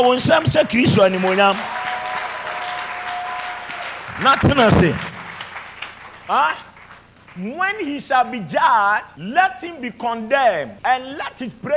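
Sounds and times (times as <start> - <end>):
speech: 0.0 - 1.8, 4.2 - 5.1, 6.3 - 6.7, 7.4 - 11.7
audience clapping hands in prayer: 0.0 - 7.5.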